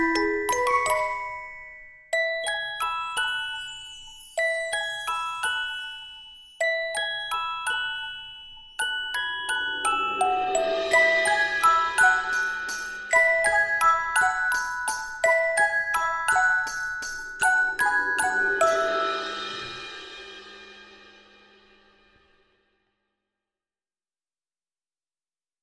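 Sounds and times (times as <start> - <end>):
music box: 0.0 - 19.8.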